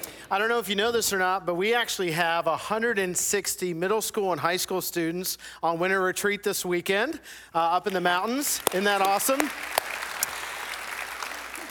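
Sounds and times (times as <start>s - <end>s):
speech: 0.3s - 9.8s
audience applause: 8.5s - 11.7s.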